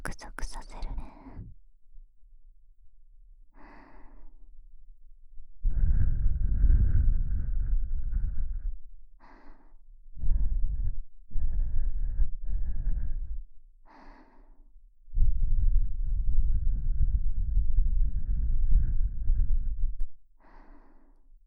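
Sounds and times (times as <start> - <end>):
sweet soft breathing: 3.6 - 4.5, 5.6 - 21.3.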